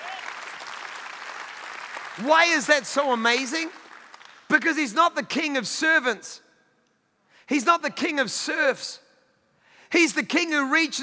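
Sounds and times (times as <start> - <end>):
audience clapping: 0.0 - 4.6
speech: 2.2 - 3.8, 4.5 - 6.4, 7.5 - 9.0, 9.9 - 11.0.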